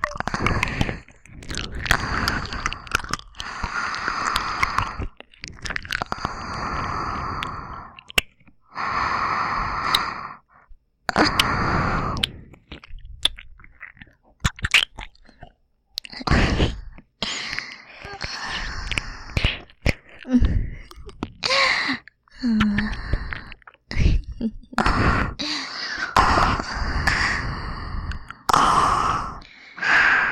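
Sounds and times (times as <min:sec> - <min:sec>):
binaural ear licking on both ears: 0:00.0 - 0:08.6, 0:11.1 - 0:25.3
aroused breathing: 0:00.2 - 0:05.3, 0:06.0 - 0:12.8, 0:16.2 - 0:30.3.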